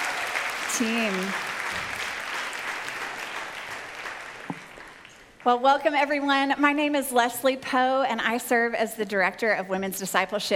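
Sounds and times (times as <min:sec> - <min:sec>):
audience applause at a Frontline Downtown church women's discipleship gathering: 0:00.0 - 0:05.4
speech: 0:00.8 - 0:01.9, 0:05.4 - 0:10.5.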